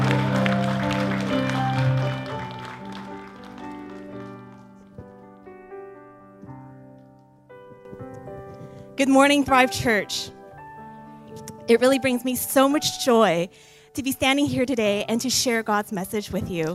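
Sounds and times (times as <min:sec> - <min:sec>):
loud music: 0:00.0 - 0:04.0
church congregation clapping as a pastor is welcomed: 0:00.0 - 0:04.8
speech: 0:09.0 - 0:10.4, 0:11.7 - 0:16.7.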